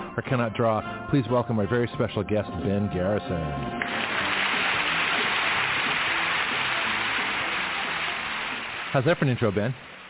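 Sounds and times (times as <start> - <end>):
speech: 0.2 - 4.1, 8.9 - 9.9
applause: 3.8 - 10.0.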